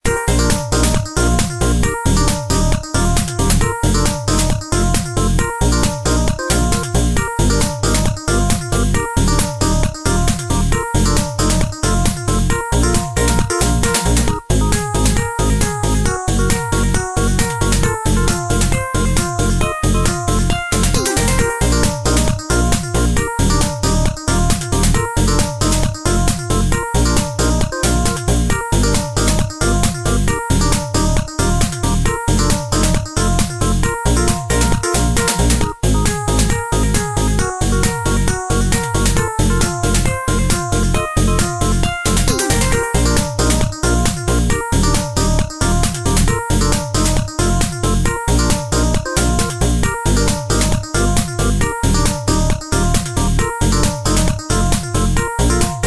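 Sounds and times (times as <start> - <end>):
music: 0.0 - 55.8.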